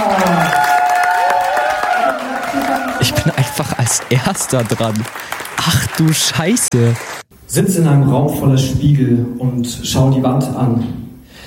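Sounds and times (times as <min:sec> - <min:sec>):
audience applause and cheering: 0:00.0 - 0:07.2
speech: 0:03.2 - 0:11.0.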